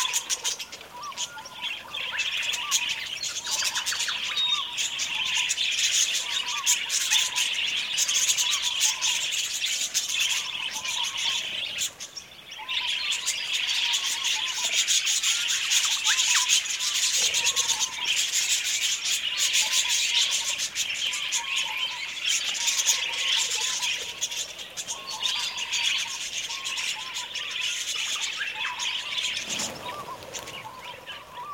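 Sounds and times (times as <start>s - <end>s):
flock of budgerigars chattering: 0.0s - 31.5s.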